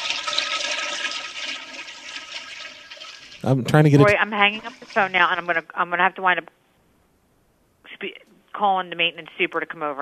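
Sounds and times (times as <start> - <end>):
toilet flushing: 0.0 - 5.2
speech: 3.4 - 6.6, 8.0 - 10.0.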